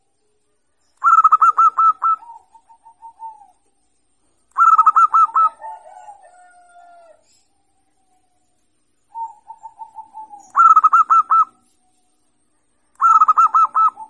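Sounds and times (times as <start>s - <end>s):
zebra dove cooing: 1.0s - 3.7s, 4.5s - 7.4s, 9.1s - 11.7s, 13.0s - 14.0s.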